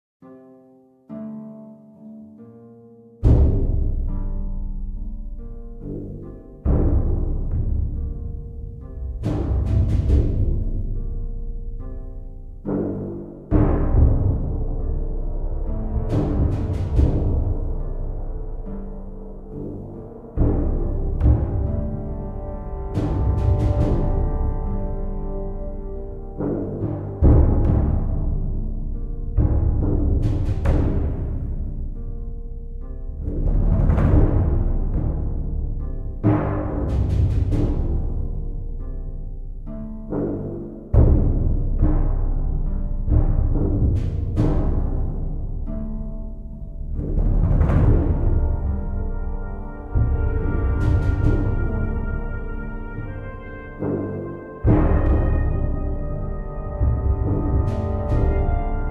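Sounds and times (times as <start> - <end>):
tense music: 2.5 - 58.9.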